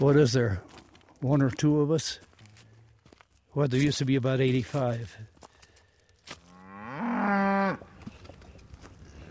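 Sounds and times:
speech: 0.0 - 2.3, 3.6 - 5.3
cow mooing: 6.5 - 7.9.

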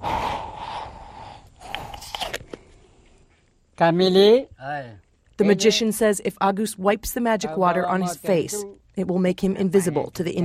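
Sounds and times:
man breathing into a water bottle: 0.0 - 3.4
speech: 3.8 - 10.4.

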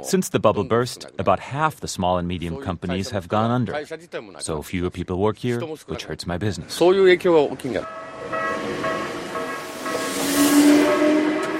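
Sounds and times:
speech: 0.0 - 8.8
commuter train running on rails: 7.8 - 11.5
faint metallic whines: 7.8 - 11.5.

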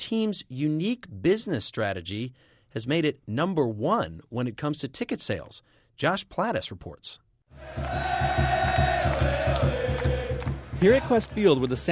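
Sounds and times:
speech: 0.1 - 8.9, 10.8 - 11.9
rhythmic low thumps: 7.6 - 11.7
crowd cheering at a Seattle Sounders soccer match at Qwest Field: 7.6 - 11.9.

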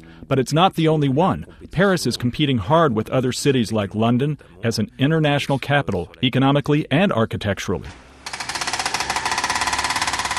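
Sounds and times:
speech: 0.2 - 8.0
hydraulic drill rattling on a construction site in the north of Paris: 8.2 - 10.3.

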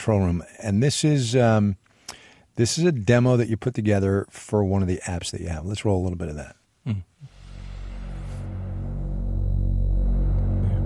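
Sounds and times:
speech: 0.0 - 1.8, 2.6 - 7.1
Moog synthesizer drone with white noise and filter cutoff build-up: 7.2 - 10.8.

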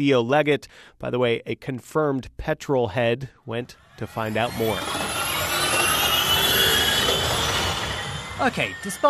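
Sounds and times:
speech: 0.0 - 5.0, 8.4 - 9.0
electric Formula E race cars revving at Donington Park circuit: 3.6 - 9.0.

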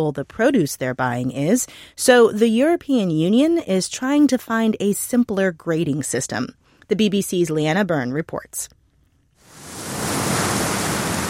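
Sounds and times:
speech: 0.0 - 8.8
sea waves below an Irish clifftop on the North Atlantic: 9.5 - 11.2.

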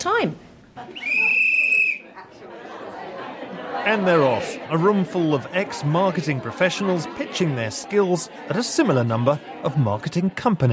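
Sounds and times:
speech: 0.0 - 1.4, 3.8 - 10.7
laughter: 0.8 - 10.7
whistle blown to start speed dating round: 1.0 - 2.1.

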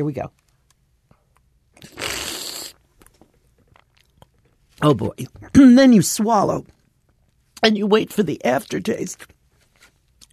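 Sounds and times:
speech: 0.0 - 0.5, 4.8 - 6.8, 7.6 - 9.4
person slurping olive oil to taste it: 1.8 - 2.8.

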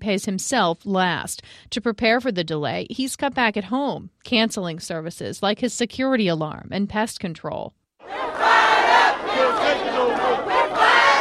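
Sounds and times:
speech: 0.0 - 8.4
protest crowd chanting and shouting outside state capitol: 8.0 - 11.1.

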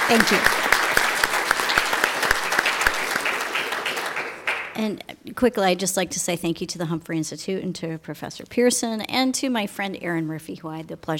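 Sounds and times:
audience round of applause: 0.0 - 4.8
speech: 0.1 - 0.7, 4.8 - 11.1.

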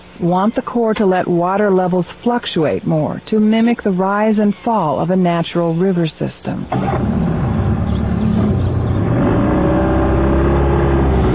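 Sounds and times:
speech: 0.2 - 7.4
boat outboard motor running and revving: 6.7 - 11.3.

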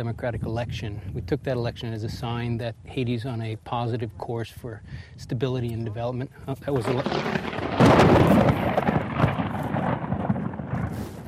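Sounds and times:
speech: 0.0 - 8.9
thunder from a nearby lightning strike: 6.8 - 11.2.

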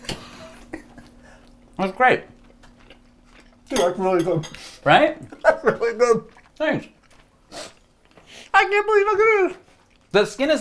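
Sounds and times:
speech: 1.8 - 2.4, 3.7 - 7.0, 8.6 - 10.6
cutlery clinking and scraping against a plate while cutting meat: 3.7 - 4.7.

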